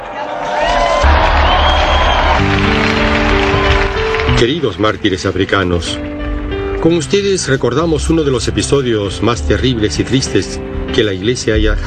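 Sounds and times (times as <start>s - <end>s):
audience applause: 0.0s - 5.0s
speech: 4.4s - 6.1s, 6.8s - 11.8s.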